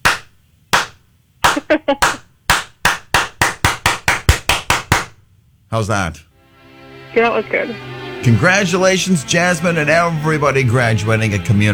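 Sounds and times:
slow ascending clap: 0.0s - 5.2s
speech: 1.7s - 2.2s, 5.7s - 6.3s, 7.1s - 11.7s.

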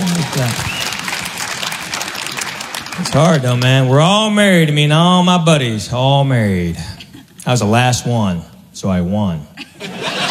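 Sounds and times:
stand-up comedy audience clapping for a woman: 0.0s - 4.2s
speech: 0.4s - 0.7s, 3.0s - 9.5s
laughter: 9.6s - 10.2s.

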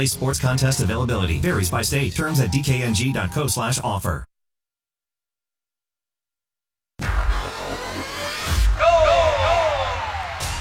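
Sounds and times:
speech: 0.0s - 4.3s
soccer crowd roaring and cheering: 8.8s - 10.5s.

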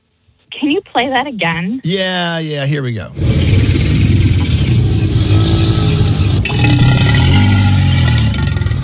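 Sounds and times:
speech: 0.6s - 3.9s
alligator bellowing: 3.1s - 8.8s.

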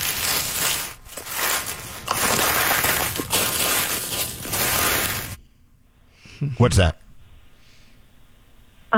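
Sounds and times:
leaves rustling: 0.0s - 5.4s
speech: 6.4s - 7.0s.

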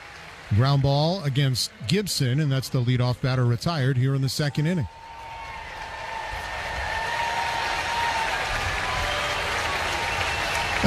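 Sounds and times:
ballpark crowd applause in Baltimore: 0.0s - 10.8s
speech: 0.5s - 5.0s.

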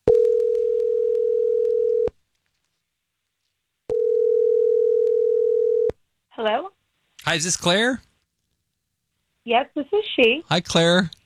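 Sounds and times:
steady low-pitched telephone tone of an outgoing call: 0.1s - 2.1s, 3.9s - 6.0s
speech: 6.4s - 8.1s, 9.5s - 11.2s.

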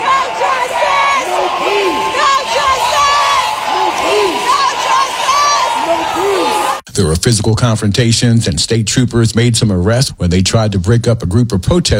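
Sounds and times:
protesters shouting inside state house: 0.0s - 6.8s
speech: 7.0s - 11.9s.

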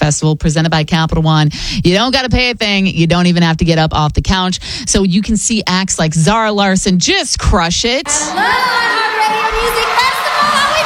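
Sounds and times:
speech: 0.1s - 10.8s
festival crowd cheering: 8.0s - 10.8s.

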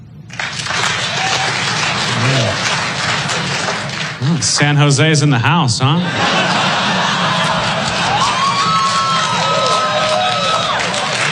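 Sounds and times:
audience clapping hands: 0.0s - 11.3s
laughter: 0.3s - 11.3s
speech: 4.4s - 6.5s.

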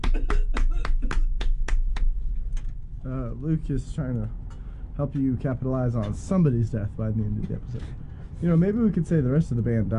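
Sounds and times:
live studio audience applause: 0.0s - 2.1s
speech: 3.0s - 4.4s, 5.0s - 9.9s.

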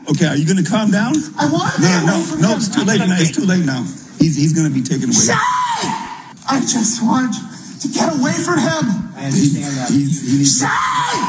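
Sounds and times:
speech: 0.1s - 11.2s
person screaming: 5.3s - 6.3s, 10.6s - 11.2s.

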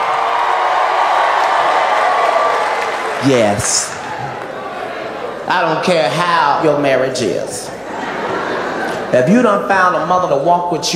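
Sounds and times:
crowd cheering and clapping: 0.0s - 5.4s
speech: 3.2s - 4.0s, 5.5s - 7.7s, 9.1s - 10.9s
laughter: 7.6s - 9.3s.

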